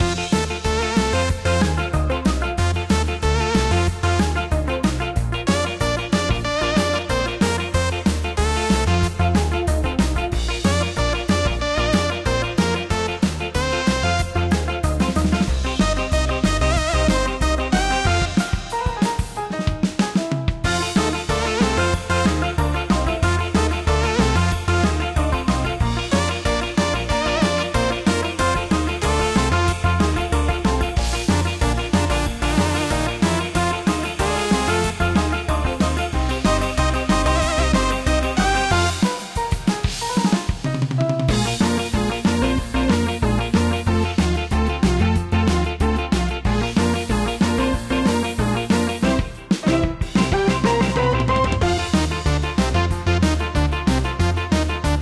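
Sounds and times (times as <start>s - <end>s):
game background music: 0.0s - 55.0s.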